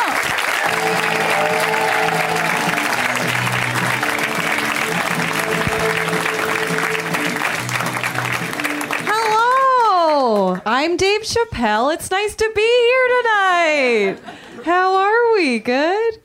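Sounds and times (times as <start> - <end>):
audience applause for comedian: 0.0 - 10.6
speech: 10.8 - 16.0.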